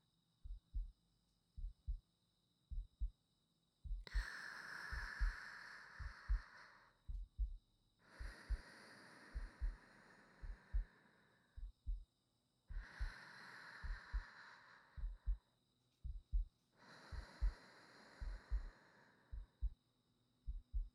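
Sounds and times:
new wife's heartbeat: 0:00.4 - 0:01.0, 0:01.6 - 0:02.0, 0:02.7 - 0:03.2, 0:03.8 - 0:04.3, 0:04.9 - 0:05.4, 0:06.0 - 0:06.5, 0:07.1 - 0:07.6, 0:08.2 - 0:08.6, 0:09.3 - 0:09.8, 0:10.4 - 0:10.9, 0:11.6 - 0:12.1, 0:12.7 - 0:13.2, 0:13.8 - 0:14.4, 0:15.0 - 0:17.6, 0:18.2 - 0:18.7, 0:19.3 - 0:19.8, 0:20.5 - 0:20.9
sleeping breathing: 0:04.1 - 0:07.0, 0:08.0 - 0:11.7, 0:12.7 - 0:15.4, 0:16.8 - 0:19.6.

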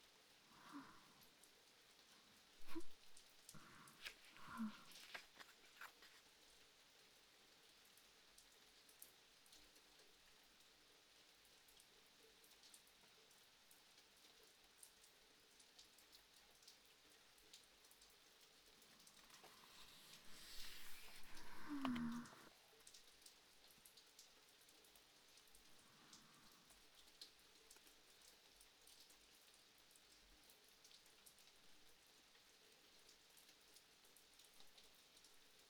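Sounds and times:
rain: 0:00.0 - 0:35.6
person reading a book: 0:02.6 - 0:06.5, 0:19.1 - 0:22.5.

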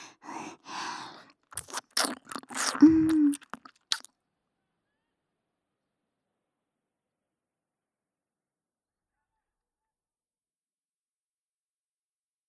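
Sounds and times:
ear licking in the left channel only: 0:00.0 - 0:04.1.

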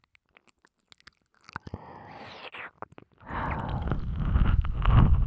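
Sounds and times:
ASMR ear licking: 0:03.3 - 0:05.2
ASMR whispering: 0:03.3 - 0:05.2.

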